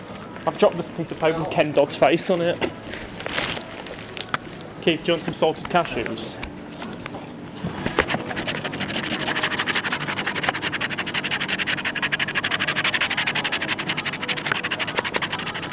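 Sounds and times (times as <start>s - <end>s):
speech: 0.4s - 3.4s, 4.8s - 6.5s
scratching a scratch card: 7.7s - 15.7s.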